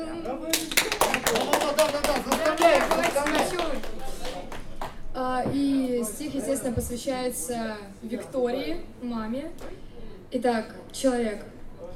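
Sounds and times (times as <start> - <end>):
applause: 0.5 - 5.0
speech: 5.2 - 11.6.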